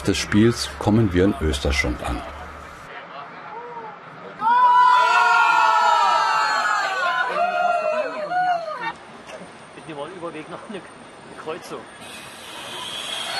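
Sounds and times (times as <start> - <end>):
speech: 0.0 - 2.4
football fans cheering and shouting on a train: 3.5 - 9.0.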